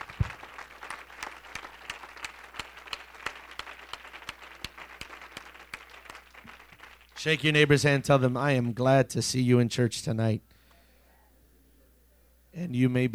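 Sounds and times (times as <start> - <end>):
audience hand clapping: 0.0 - 7.8
speech: 7.2 - 10.5, 12.7 - 13.1.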